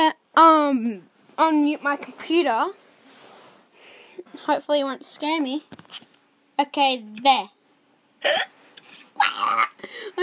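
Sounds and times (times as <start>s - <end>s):
speech: 0.7s - 2.8s, 4.3s - 7.6s, 8.2s - 10.2s
person coughing: 8.2s - 8.5s.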